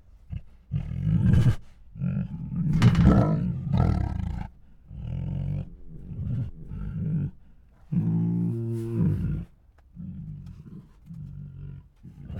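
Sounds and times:
two hungry tigers roaring, huffing, growling and moaning: 0:02.2 - 0:09.5.

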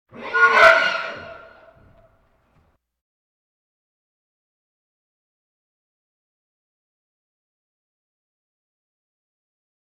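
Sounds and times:
farm animal snorts: 0:00.2 - 0:01.6.

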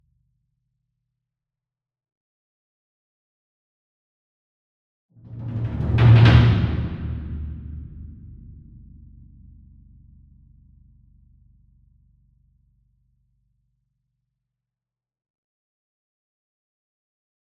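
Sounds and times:
40 inch concert bass drum roll with soft beater: 0:05.3 - 0:08.5.

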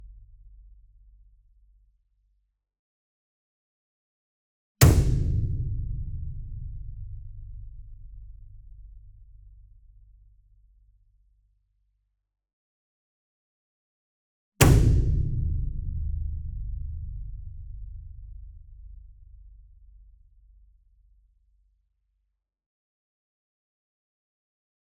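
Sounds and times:
40 inch concert bass drum hit with whip beater: 0:04.8 - 0:08.8, 0:14.6 - 0:18.9.

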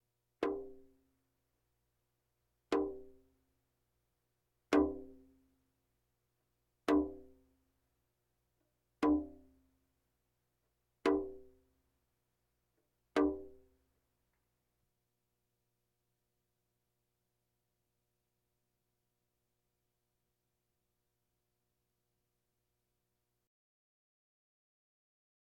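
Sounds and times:
bongos: 0:04.8 - 0:05.3, 0:06.9 - 0:07.4, 0:09.0 - 0:09.6, 0:11.1 - 0:11.6, 0:13.2 - 0:13.7.

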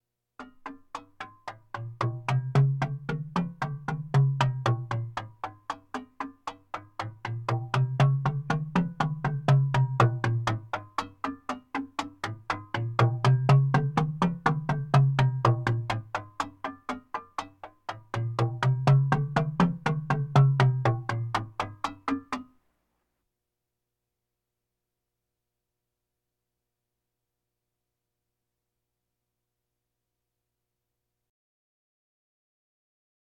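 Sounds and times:
bongos: 0:00.4 - 0:22.6
drums: 0:00.5 - 0:22.5.

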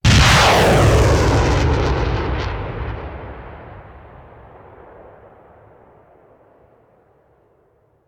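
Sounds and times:
artillery missile launcher firing: 0:00.0 - 0:05.1.

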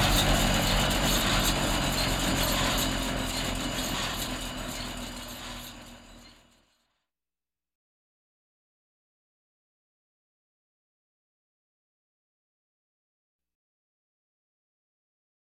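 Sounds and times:
machinery trucks moving: 0:00.0 - 0:06.5.

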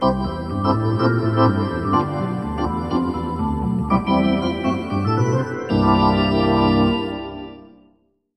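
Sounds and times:
hockey arena organ: 0:00.0 - 0:07.8.

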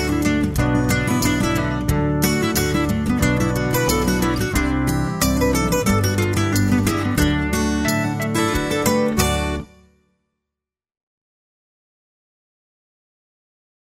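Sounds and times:
easy listening royalty free music: 0:00.0 - 0:09.9.

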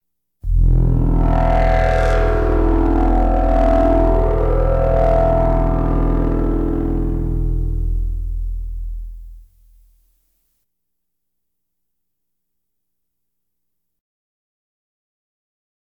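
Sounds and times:
science fiction effects: 0:00.5 - 0:09.5.

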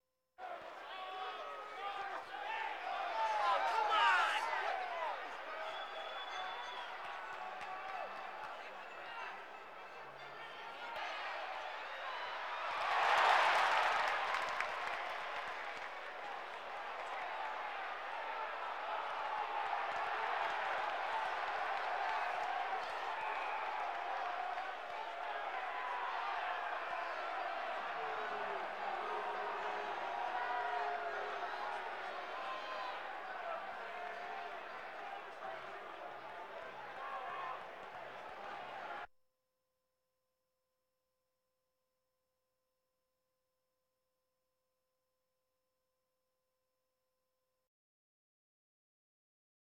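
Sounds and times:
sports crowd: 0:00.4 - 0:39.1.

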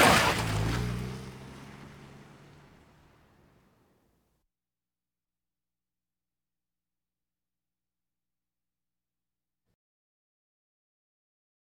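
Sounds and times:
various automobiles: 0:00.0 - 0:04.0.

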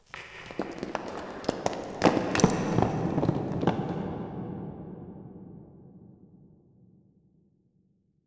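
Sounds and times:
rocks: 0:00.0 - 0:04.1.

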